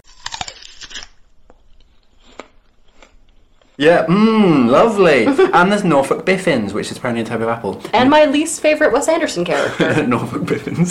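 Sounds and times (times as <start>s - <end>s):
crunching bite of an onion: 0.0s - 3.8s
speech: 3.8s - 10.8s
laughter: 5.1s - 5.7s, 9.5s - 10.8s.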